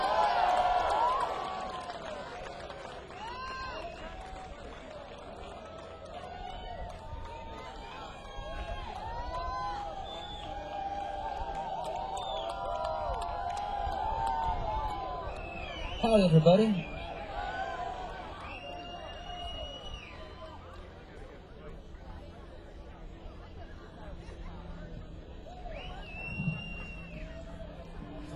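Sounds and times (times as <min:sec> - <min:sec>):
crowd cheering and applauding a rock band at a radio-station concert: 0:00.0 - 0:21.4, 0:25.4 - 0:28.3
whoops and whistles: 0:09.4 - 0:10.9, 0:12.0 - 0:12.9, 0:15.2 - 0:16.1, 0:18.4 - 0:20.6, 0:25.5 - 0:27.6
speech: 0:16.1 - 0:16.9.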